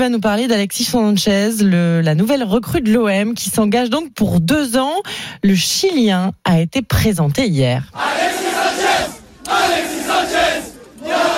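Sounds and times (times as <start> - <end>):
speech: 0.0 - 9.8
large crowd of football fans chanting and cheering: 7.9 - 11.3.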